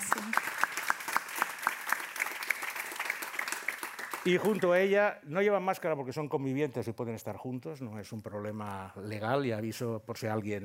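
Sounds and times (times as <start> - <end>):
audience applause: 0.0 - 4.7
speech: 4.2 - 10.6.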